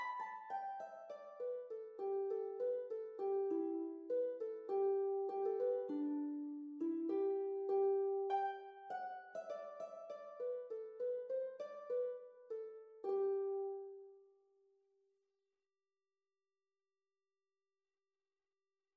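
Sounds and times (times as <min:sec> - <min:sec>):
harp melody in G Major: 0:00.0 - 0:14.2.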